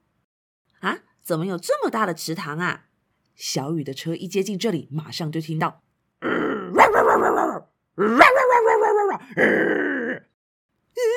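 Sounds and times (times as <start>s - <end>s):
speech: 0.8s - 6.4s, 7.4s - 9.9s
pack of stray dogs barking and snarling: 6.7s - 9.3s.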